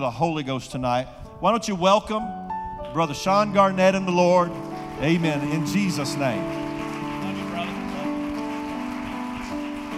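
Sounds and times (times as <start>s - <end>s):
speech: 0.0s - 6.6s
audience applause: 4.4s - 9.9s.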